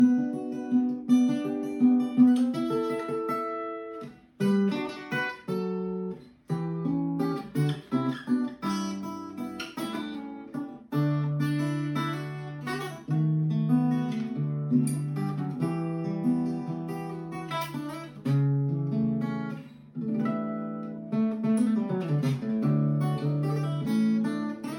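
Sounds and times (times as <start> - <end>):
acoustic guitar: 0.0 - 24.7.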